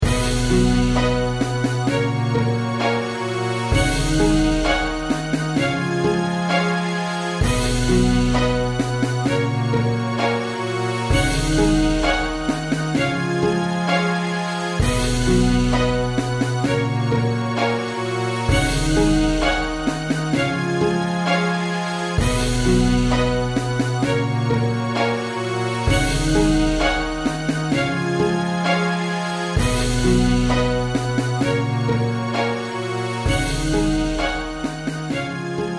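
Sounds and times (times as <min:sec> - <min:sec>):
instrumental music: 0:00.0 - 0:35.7.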